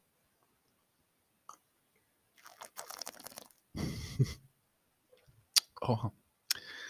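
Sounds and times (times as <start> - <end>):
someone taking a sip of a drink: 2.4 - 3.6
speech: 3.8 - 4.4, 5.9 - 6.2.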